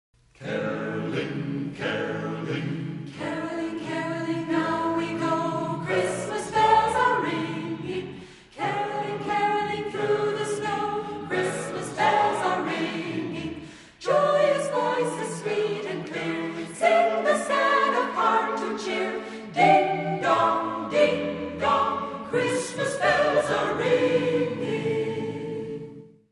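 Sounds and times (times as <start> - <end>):
people caroling: 0.4 - 26.0.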